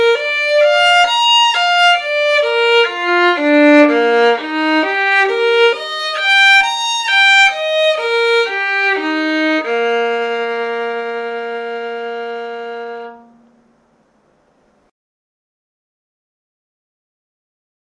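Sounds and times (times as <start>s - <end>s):
B major scale arpeggios: 0.0s - 14.2s.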